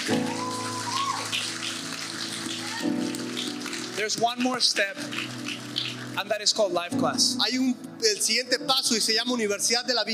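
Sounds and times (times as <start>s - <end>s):
audience applause: 0.0s - 6.2s
speech: 4.0s - 5.4s, 6.2s - 10.1s.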